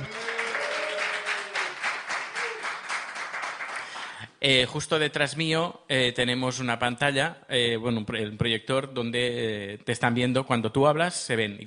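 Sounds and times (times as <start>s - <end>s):
faint voices or cheers: 0.0s - 2.8s
live audience applause: 0.0s - 4.2s
speech: 4.4s - 11.6s.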